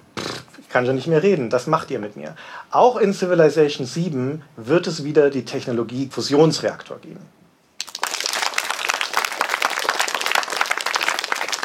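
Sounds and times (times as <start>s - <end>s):
speech: 0.7s - 7.4s
friendly audience applause: 7.8s - 11.6s.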